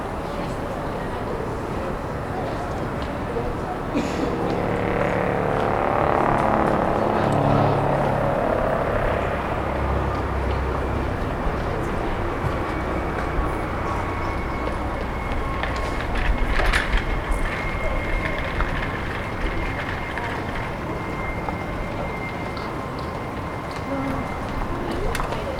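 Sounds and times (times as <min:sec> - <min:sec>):
traffic and city rumble on a High Street: 0:00.0 - 0:25.5
voices murmuring: 0:00.0 - 0:25.5
vehicle passing: 0:03.8 - 0:16.2.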